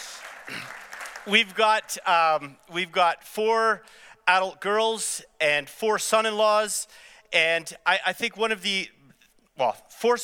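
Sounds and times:
audience applause: 0:00.0 - 0:01.9
speech: 0:00.5 - 0:09.0, 0:09.6 - 0:10.2.

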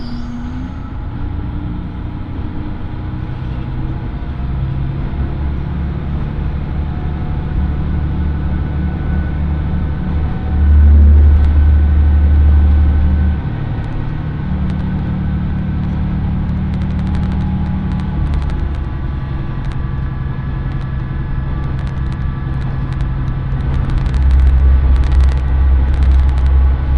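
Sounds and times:
Oito Line train engine drone: 0:00.0 - 0:26.9
clicks and rattles: 0:13.8 - 0:19.0, 0:20.6 - 0:26.9.

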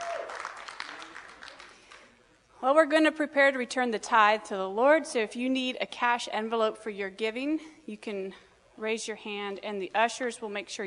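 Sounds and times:
audience clapping: 0:00.0 - 0:02.2
speech: 0:02.6 - 0:10.8.

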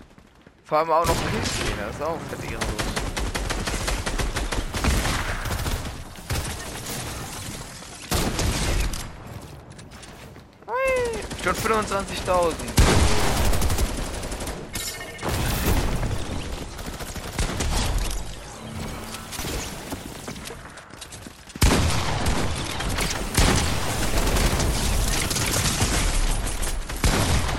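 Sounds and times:
speech: 0:00.7 - 0:02.8, 0:11.4 - 0:13.0
alien weapon gunfire from the Fortnite video game: 0:01.0 - 0:09.5, 0:10.2 - 0:20.9, 0:21.5 - 0:27.5.

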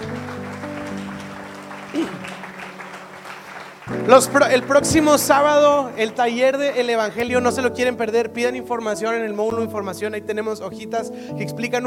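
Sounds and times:
audience applauding: 0:00.0 - 0:06.3
speech: 0:04.0 - 0:11.8.

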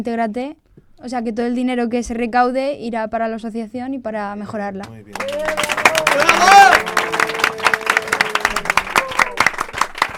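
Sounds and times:
speech: 0:00.0 - 0:07.0
audience applause: 0:05.1 - 0:10.1.

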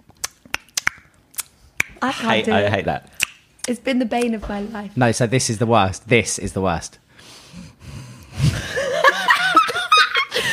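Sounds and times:
tongue clicking: 0:00.1 - 0:02.0
speech: 0:02.0 - 0:07.4
laughter: 0:08.4 - 0:10.5.

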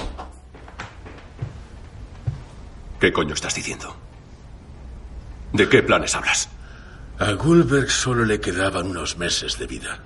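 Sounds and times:
door being closed: 0:00.0 - 0:01.5
speech: 0:03.0 - 0:04.1, 0:05.5 - 0:06.5, 0:07.2 - 0:10.0.

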